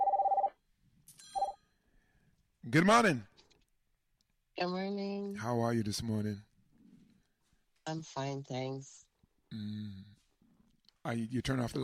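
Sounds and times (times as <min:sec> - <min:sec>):
telephone ringing: 0:00.0 - 0:00.6, 0:01.3 - 0:01.6
speech: 0:02.6 - 0:03.3, 0:04.6 - 0:06.5, 0:07.9 - 0:10.2, 0:11.0 - 0:11.8.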